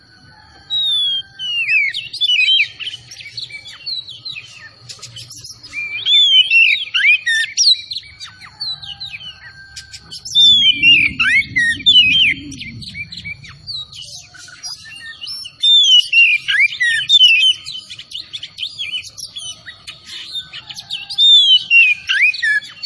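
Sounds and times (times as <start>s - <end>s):
Oriental magpie-robin whistled song: 0.7s - 22.8s
faint low hum: 8.5s - 15.3s.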